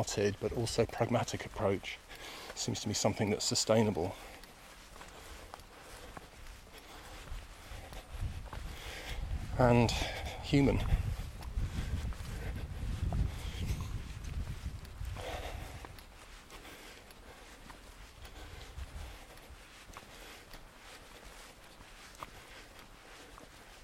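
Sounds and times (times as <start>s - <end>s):
speech: 0.0s - 4.4s, 9.6s - 11.0s
footsteps of a person walking outdoors: 0.0s - 23.8s
wind buffeting the microphone: 6.0s - 16.6s, 18.1s - 19.6s.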